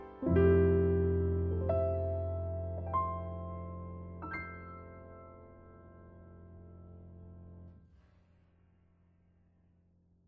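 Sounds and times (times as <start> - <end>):
Steinway piano: 0.0 - 7.9.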